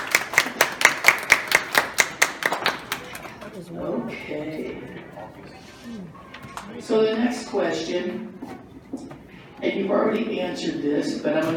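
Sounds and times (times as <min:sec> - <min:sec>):
sharp hand claps: 0:00.0 - 0:03.2
speech: 0:03.6 - 0:11.5.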